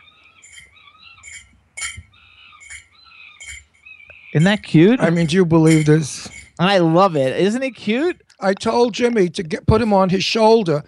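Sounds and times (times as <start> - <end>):
wind-up cymbal monkey toy clanging cymbals: 0.4 - 3.8, 4.4 - 6.7
speech: 4.3 - 10.8.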